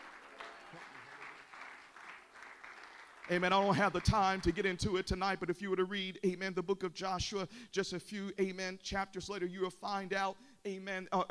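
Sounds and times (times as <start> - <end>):
audience clapping hands: 0.0 - 5.2
speech: 3.3 - 11.2.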